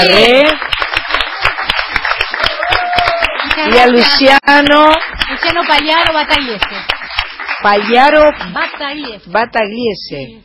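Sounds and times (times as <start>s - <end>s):
speech: 0.0s - 0.7s, 3.7s - 7.0s, 7.6s - 10.4s
audience applause: 0.0s - 9.2s
faint cheer: 2.3s - 3.5s.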